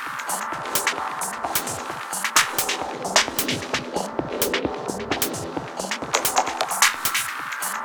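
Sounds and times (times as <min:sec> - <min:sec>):
ambience: 0:00.2 - 0:07.8.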